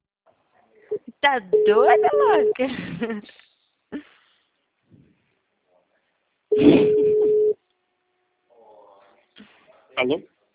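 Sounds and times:
speech: 0.9s - 4.0s, 10.0s - 10.3s
telephone line tone after a dropped call: 1.5s - 2.6s, 6.5s - 7.6s.

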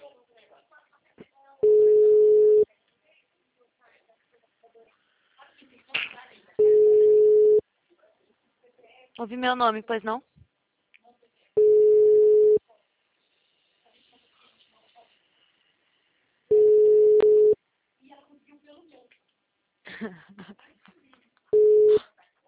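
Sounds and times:
telephone line tones: 1.6s - 2.6s, 6.6s - 7.6s, 11.6s - 12.6s, 16.5s - 17.6s, 21.6s - 22.0s
speech: 9.2s - 10.3s.

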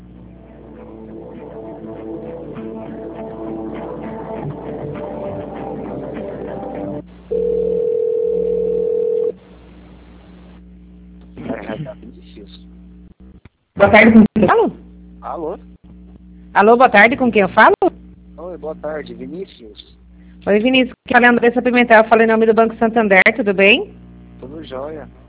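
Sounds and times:
telephone line tone while a call is transferred: 7.3s - 9.4s
speech: 13.8s - 14.3s, 16.6s - 17.8s, 18.7s - 24.0s.

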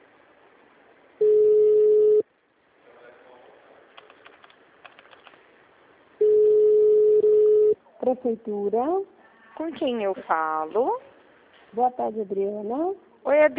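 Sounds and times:
telephone busy signal: 1.2s - 2.2s, 6.2s - 7.8s
faint keyboard typing: 3.9s - 5.4s
speech: 8.1s - 11.1s, 11.7s - 13.5s.

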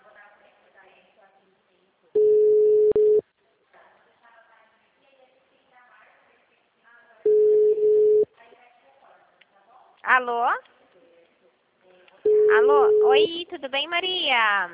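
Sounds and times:
telephone busy signal: 2.2s - 3.2s, 7.3s - 8.2s, 12.3s - 13.3s
speech: 10.2s - 10.8s, 12.5s - 14.7s.

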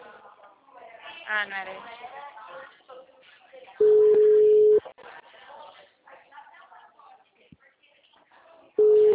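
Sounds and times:
speech: 1.3s - 2.1s
unanswered WhatsApp call ringback tone: 3.8s - 4.8s, 8.8s - 9.1s.

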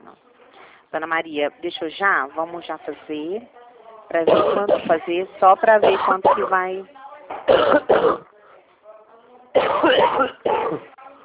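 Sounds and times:
faint murmuring: 0.0s - 11.2s
speech: 0.9s - 8.2s
person with flu and bronchitis coughing and clearing throat: 4.3s - 4.9s, 5.8s - 6.5s, 7.5s - 8.3s, 9.6s - 10.8s.

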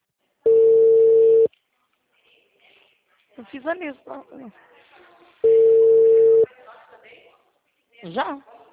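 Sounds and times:
faint talk: 0.0s - 8.7s
telephone tone as a call is placed to the last number dialed: 0.5s - 1.5s, 5.4s - 6.5s
speech: 3.4s - 4.9s, 8.0s - 8.5s.

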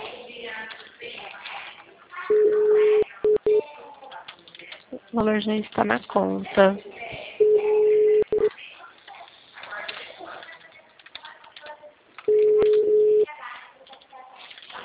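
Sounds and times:
people talking quietly: 0.0s - 14.8s
telephone ringback tone: 2.3s - 3.6s, 7.4s - 8.5s, 12.3s - 13.3s
speech: 5.2s - 6.9s.

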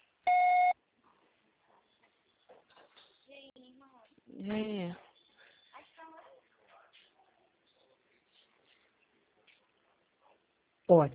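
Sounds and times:
voicemail beep: 0.3s - 0.8s
speech: 4.3s - 5.0s, 10.9s - 11.1s.

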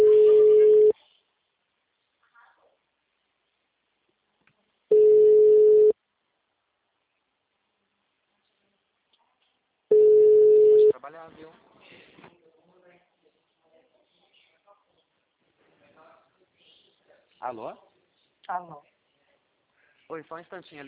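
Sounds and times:
ringback tone of an outgoing phone call: 0.0s - 0.9s, 4.9s - 6.0s, 9.9s - 10.9s
speech: 17.5s - 17.8s, 20.1s - 20.8s.

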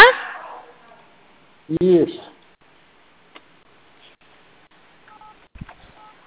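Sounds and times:
speech: 1.7s - 2.3s
two-tone telephone beeps as a call drops: 5.1s - 5.4s, 6.0s - 6.2s.

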